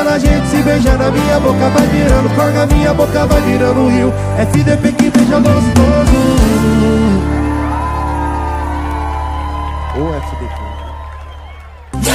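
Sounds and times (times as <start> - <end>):
speech: 0.0 - 7.0
football crowd cheering: 6.4 - 12.1.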